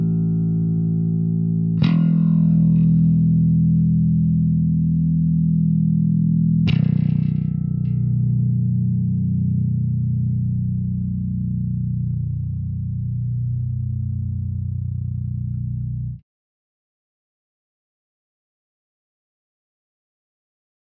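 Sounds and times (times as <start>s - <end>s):
modified bass guitar open strings: 0.0s - 16.2s.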